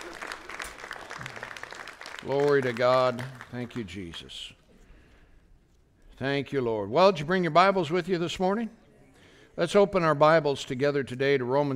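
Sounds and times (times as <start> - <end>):
audience applauding: 0.0 - 4.3
speech: 2.2 - 4.6, 6.2 - 8.8, 9.6 - 11.7.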